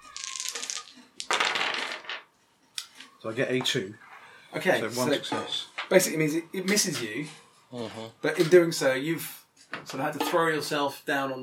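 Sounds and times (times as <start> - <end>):
dice being rolled: 0.0 - 2.3
speech: 3.2 - 11.4.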